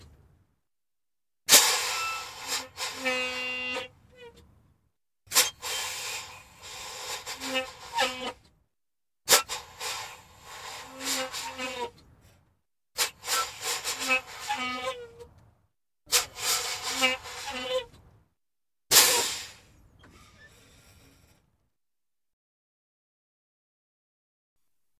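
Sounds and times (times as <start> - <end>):
air brake hissing: 1.5 - 3.5, 5.3 - 8.4, 9.3 - 11.9, 13.0 - 14.7, 16.1 - 17.6, 18.9 - 21.4.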